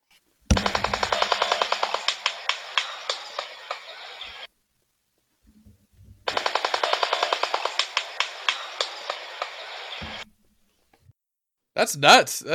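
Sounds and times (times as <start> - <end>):
shoebill bill clattering: 0.5 - 4.4, 6.3 - 10.2
speech: 11.8 - 12.5.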